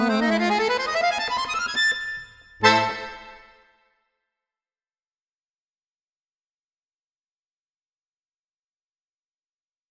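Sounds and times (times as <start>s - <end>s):
tango music: 0.0s - 3.6s
accordion: 0.0s - 3.7s.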